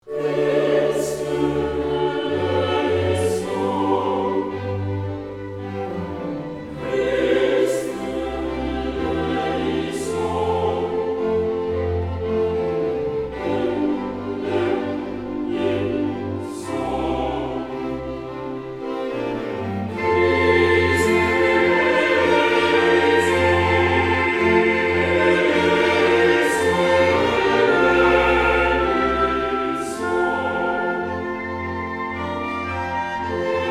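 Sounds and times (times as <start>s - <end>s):
sacred mass music in D, moderato: 0.0s - 33.6s.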